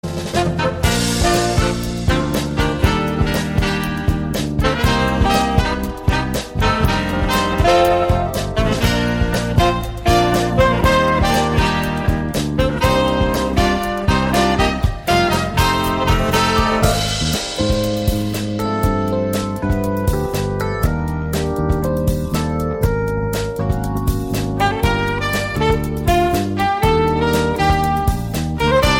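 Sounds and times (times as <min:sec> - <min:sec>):
jazz music: 0:00.0 - 0:28.9.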